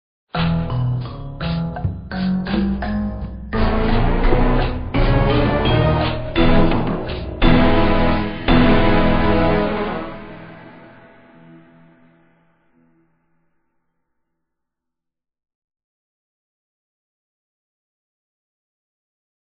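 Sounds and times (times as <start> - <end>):
victory music: 1.6 - 12.3.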